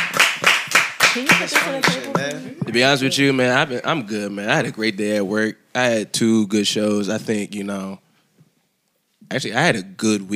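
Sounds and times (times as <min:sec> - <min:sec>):
hands clapping: 0:00.0 - 0:03.0
speech: 0:01.2 - 0:08.0, 0:09.3 - 0:10.3.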